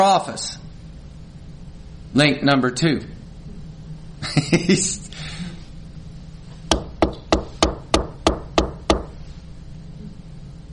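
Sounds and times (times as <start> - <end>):
speech: 0.0 - 0.7, 2.1 - 3.2, 4.2 - 5.3
knocking on a door: 6.7 - 9.2.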